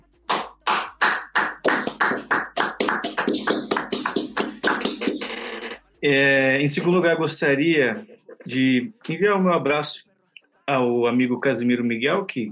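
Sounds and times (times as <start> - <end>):
audience applause: 0.3 - 5.0
speech: 6.0 - 10.1, 10.7 - 12.5.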